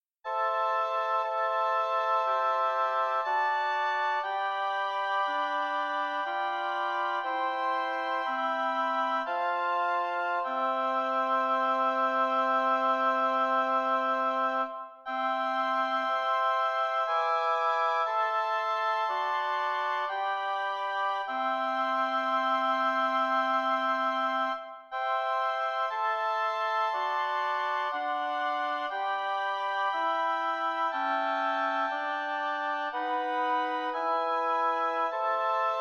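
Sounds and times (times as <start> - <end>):
lyrical oboe quartet: 0.2 - 35.8.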